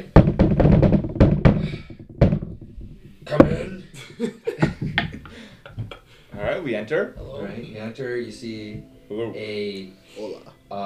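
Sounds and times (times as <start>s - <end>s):
knocking on a door: 0.0s - 5.2s
speech: 6.6s - 10.8s.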